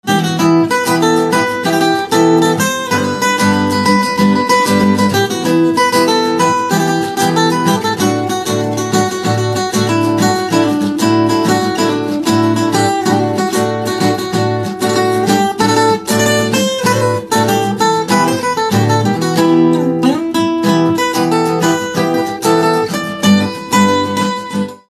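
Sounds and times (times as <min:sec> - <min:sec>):
guitar instrumental ringtone: 0:00.0 - 0:24.9.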